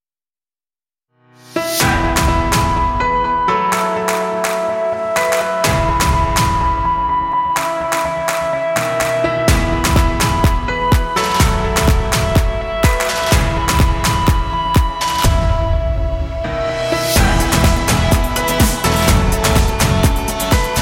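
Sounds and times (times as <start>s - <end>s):
instrumental music: 1.4s - 20.8s.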